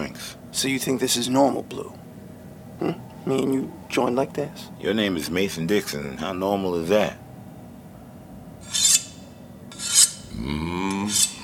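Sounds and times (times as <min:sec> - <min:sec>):
low rising metallic whine: 0:00.0 - 0:11.4
speech: 0:00.6 - 0:02.1, 0:02.8 - 0:07.2
blade being sharpened by friction: 0:08.6 - 0:11.4.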